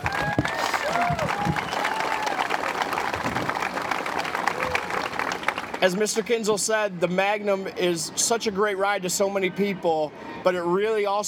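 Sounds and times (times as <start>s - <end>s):
audience applause: 0.0s - 6.0s
speech: 5.8s - 11.2s.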